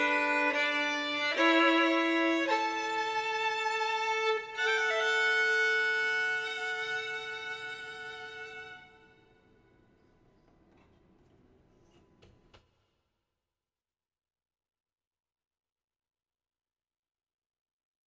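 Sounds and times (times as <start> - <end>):
solo violin: 0.0 - 9.9.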